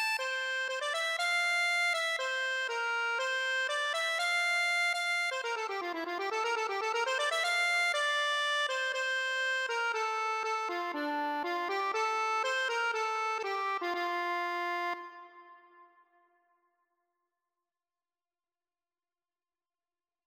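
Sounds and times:
accordion: 0:00.0 - 0:15.8.

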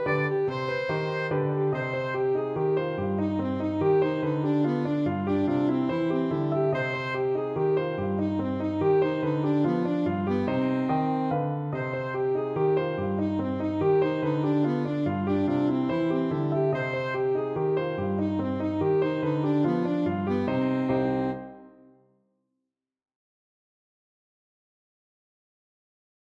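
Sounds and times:
alto saxophone playing a waltz: 0:00.0 - 0:21.6.

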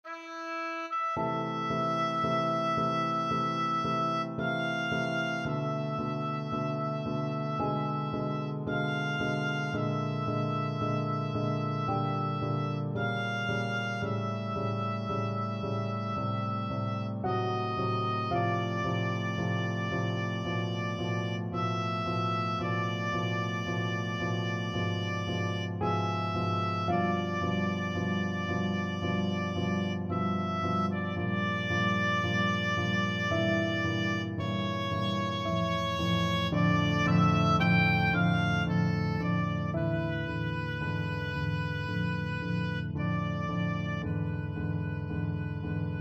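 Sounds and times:
oboe playing classical music: 0:00.0 - 0:45.9.

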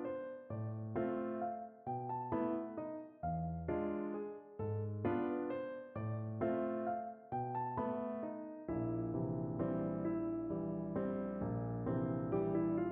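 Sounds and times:
fantasia on piano: 0:00.0 - 0:12.9.

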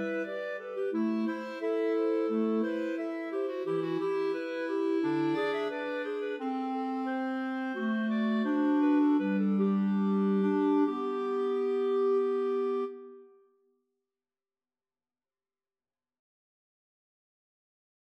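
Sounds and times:
clarinet trio: 0:00.0 - 0:13.3.

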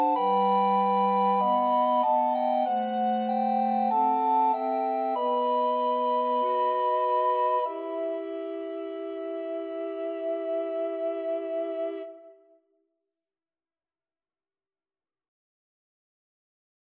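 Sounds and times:
recorder quartet: 0:00.0 - 0:12.3.

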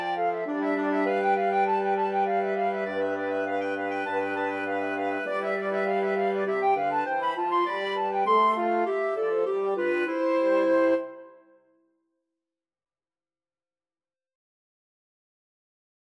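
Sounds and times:
horn: 0:00.0 - 0:11.4
clarinet: 0:00.0 - 0:11.7
flute: 0:00.0 - 0:11.8.

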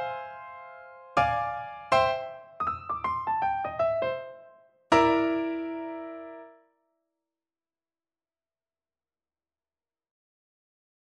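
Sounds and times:
jazzy birthday song piano duet: 0:00.0 - 0:06.5.

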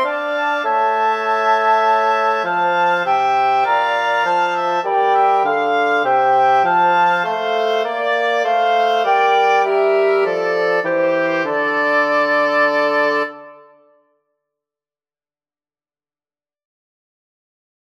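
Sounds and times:
wind quartet playing: 0:00.0 - 0:13.9.

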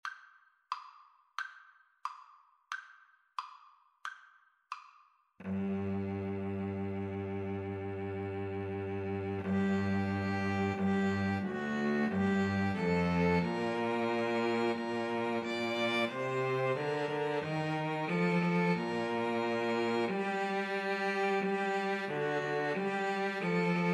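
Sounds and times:
cello: 0:05.4 - 0:23.9
two violins: 0:05.4 - 0:23.9.

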